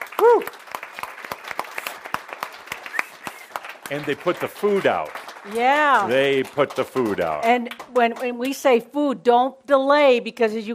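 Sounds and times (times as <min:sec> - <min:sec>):
small audience applauding: 0:00.0 - 0:08.6
rising-and-falling vocal whoop: 0:00.2 - 0:00.5
speech: 0:03.9 - 0:10.7.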